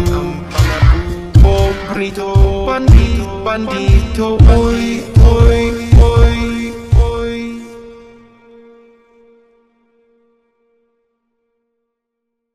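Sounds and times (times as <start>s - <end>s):
slow reverb effect: 0.0s - 10.0s.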